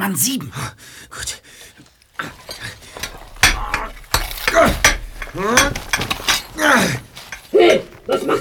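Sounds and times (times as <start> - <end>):
speech: 0.0 - 1.4, 5.3 - 5.8
chiselling an air hole: 2.2 - 8.2.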